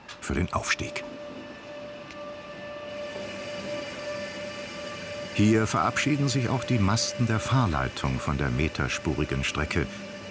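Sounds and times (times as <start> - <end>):
high-pitched brake squeal: 0.0 - 10.2
rack railway train braking: 0.0 - 10.2
speech: 0.3 - 1.1, 5.4 - 10.1.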